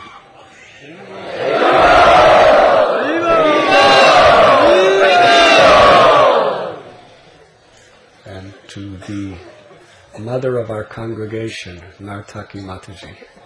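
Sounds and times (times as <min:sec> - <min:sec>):
crowd cheering and whooping to welcome a guest: 0:01.1 - 0:06.9
speech: 0:10.4 - 0:13.3.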